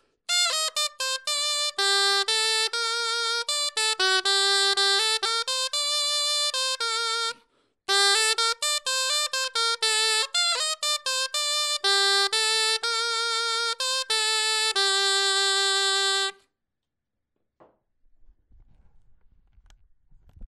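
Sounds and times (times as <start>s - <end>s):
clarinet etude: 0.3s - 16.4s.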